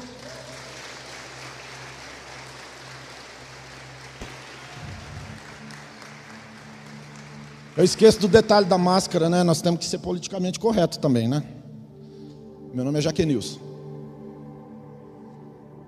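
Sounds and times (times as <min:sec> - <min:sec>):
audience applauding: 0:00.0 - 0:09.3
speech: 0:07.8 - 0:11.6, 0:12.8 - 0:13.7.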